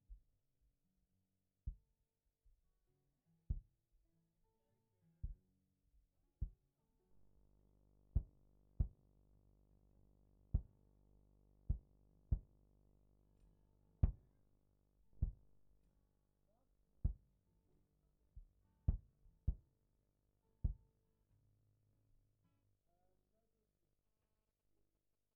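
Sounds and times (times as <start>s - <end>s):
kick drum: 1.7s - 1.9s, 3.5s - 3.7s, 5.2s - 5.5s, 6.4s - 6.6s, 8.2s - 9.0s, 10.5s - 10.8s, 11.7s - 12.5s, 14.0s - 14.2s, 15.2s - 15.4s, 17.0s - 17.3s, 18.4s - 19.6s, 20.6s - 20.8s.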